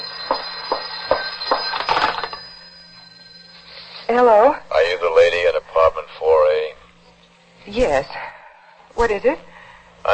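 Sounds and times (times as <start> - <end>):
telephone ringing: 0.0 - 4.5
speech: 4.1 - 6.8, 7.6 - 8.3, 9.0 - 10.1.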